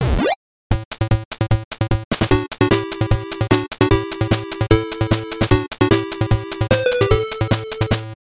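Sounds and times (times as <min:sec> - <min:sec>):
8-bit start sound: 0:00.9 - 0:08.2.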